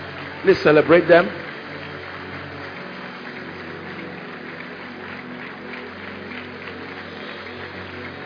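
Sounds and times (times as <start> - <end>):
audience clapping: 0.0 - 8.2
speech: 0.4 - 1.4.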